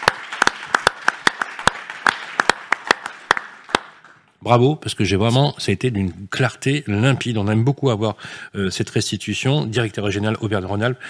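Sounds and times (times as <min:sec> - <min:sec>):
audience applause: 0:00.0 - 0:04.2
speech: 0:04.4 - 0:11.0.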